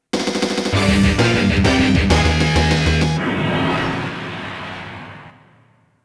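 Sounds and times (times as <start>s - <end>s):
background music: 0.2s - 3.2s.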